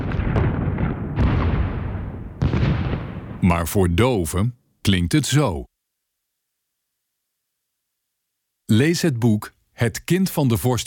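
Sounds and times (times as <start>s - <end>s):
bombardment explosions and artillery fire: 0.0s - 3.7s
speech: 3.5s - 5.7s, 8.7s - 10.8s.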